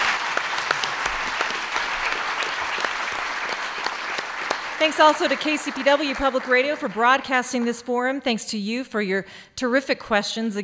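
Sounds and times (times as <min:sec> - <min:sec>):
audience applause: 0:00.0 - 0:07.6
speech: 0:04.8 - 0:10.6.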